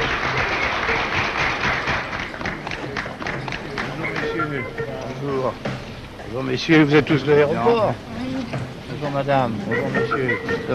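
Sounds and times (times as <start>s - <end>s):
crowd applause greeting the President of the French Republic: 0.0s - 4.4s
speech: 5.4s - 5.7s, 6.3s - 8.2s, 9.0s - 10.7s.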